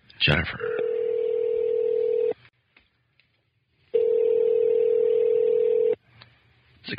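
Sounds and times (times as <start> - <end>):
outgoing phone call ringback tone: 0.6 - 2.4, 4.0 - 6.0.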